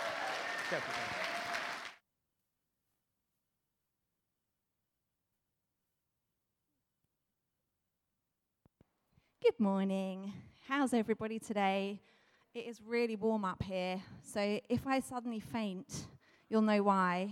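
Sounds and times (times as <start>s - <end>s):
audience applause: 0.0s - 2.0s
speech: 0.7s - 1.3s, 9.5s - 17.2s.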